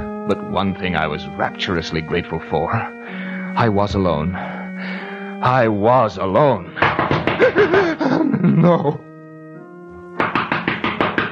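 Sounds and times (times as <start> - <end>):
held musical tone: 0.0 - 10.2
speech: 0.3 - 9.0
knocking on a door: 6.8 - 7.8, 10.2 - 11.3
laughter: 7.4 - 9.0.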